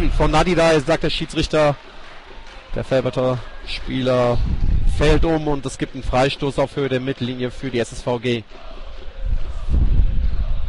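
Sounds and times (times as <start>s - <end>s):
speech: 0.1s - 1.9s, 2.8s - 8.7s
strong wind blowing into microphones: 4.4s - 5.3s, 9.2s - 10.6s.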